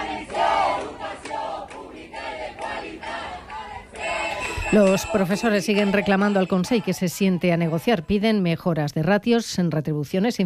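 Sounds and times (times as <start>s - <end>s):
crowd of protesting teachers chanting slogans in unison: 0.0s - 8.2s
speech: 4.7s - 10.4s.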